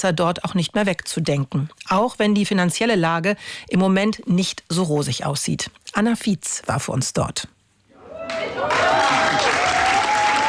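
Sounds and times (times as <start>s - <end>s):
speech: 0.0s - 7.6s
thunderous crowd applause for youth theatre: 8.0s - 10.4s.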